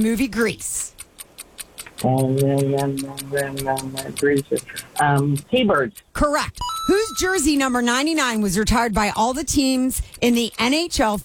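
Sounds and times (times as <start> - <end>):
speech: 0.0 - 1.0, 2.0 - 11.2
stop clock ticking during a quiz round: 0.0 - 11.2
person speaking loudly: 2.0 - 5.9.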